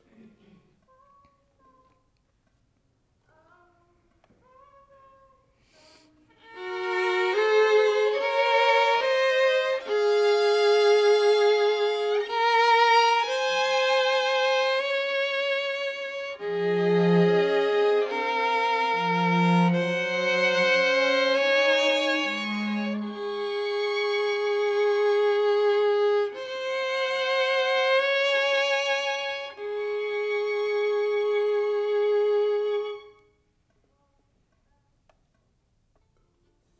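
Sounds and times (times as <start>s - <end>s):
violin: 6.3s - 33.4s.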